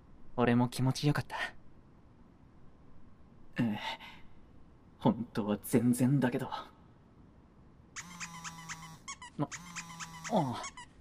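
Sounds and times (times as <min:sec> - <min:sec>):
speech: 0:00.4 - 0:01.6, 0:03.6 - 0:04.2, 0:05.0 - 0:06.7, 0:09.4 - 0:10.8
mobile phone ringing: 0:08.0 - 0:10.3
mobile phone vibrating buzz: 0:08.0 - 0:10.8.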